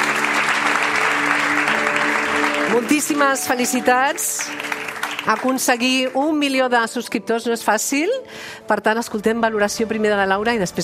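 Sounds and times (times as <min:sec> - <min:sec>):
audience applause at an awards ceremony: 0:00.0 - 0:06.2
speech: 0:02.7 - 0:10.8.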